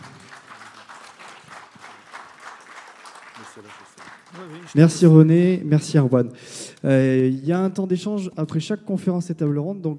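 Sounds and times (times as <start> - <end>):
audience applause after a lecture: 0.0 - 5.0
speech: 3.5 - 9.9.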